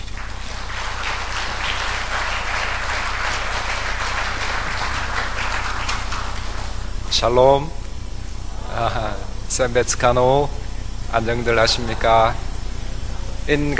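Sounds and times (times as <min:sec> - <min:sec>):
audience applause welcoming a speaker: 0:00.0 - 0:07.4, 0:11.1 - 0:13.2
speech: 0:07.2 - 0:07.8, 0:08.8 - 0:12.4, 0:13.5 - 0:13.7.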